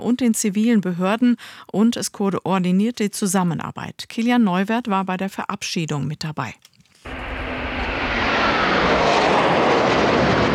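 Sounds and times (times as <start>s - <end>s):
speech: 0.0s - 6.7s
two Eurofighter jets flying low overhead: 7.1s - 10.5s.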